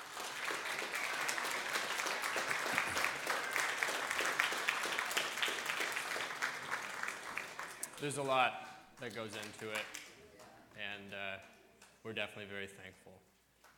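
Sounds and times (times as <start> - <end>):
audience applause: 0.0 - 8.4
speech: 8.0 - 10.0, 10.8 - 13.3.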